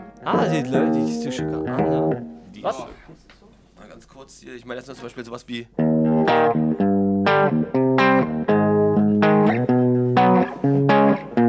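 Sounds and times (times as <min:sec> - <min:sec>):
electric guitar played through effects: 0:00.0 - 0:02.4, 0:05.8 - 0:11.4
speech: 0:00.2 - 0:08.3
laughter: 0:00.3 - 0:02.2.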